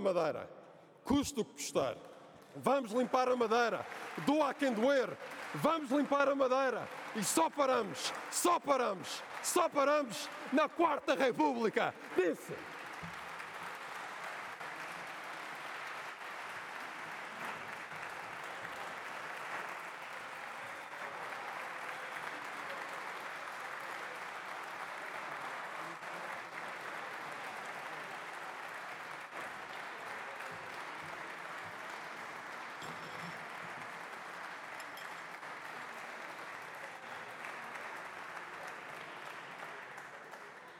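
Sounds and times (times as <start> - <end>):
speech: 0.0 - 12.8
crowd applauding from the public gallery: 1.1 - 40.7.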